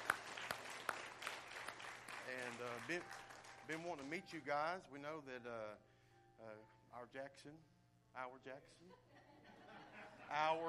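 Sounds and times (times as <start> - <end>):
audience applause: 0.0 - 4.1
speech: 2.3 - 9.1, 10.3 - 10.6
laughter: 8.8 - 10.6.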